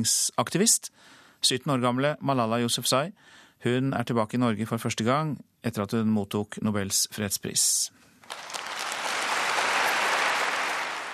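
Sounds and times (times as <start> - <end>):
speech: 0.0 - 8.6
full hall audience cheering and applauding: 8.2 - 11.1.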